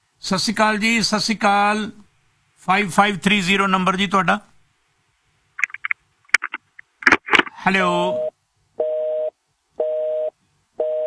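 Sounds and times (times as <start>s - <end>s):
speech: 0.2s - 2.0s, 2.6s - 4.5s, 7.7s - 8.3s
telephone busy tone after a phone-in call disconnected: 8.0s - 11.0s.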